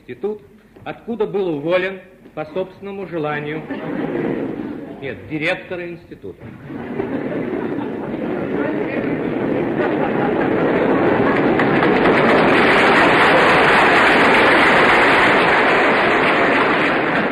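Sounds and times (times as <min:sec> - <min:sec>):
speech: 0:00.1 - 0:07.2
laughter: 0:03.3 - 0:05.6, 0:06.4 - 0:15.0
audience applause: 0:06.4 - 0:17.3.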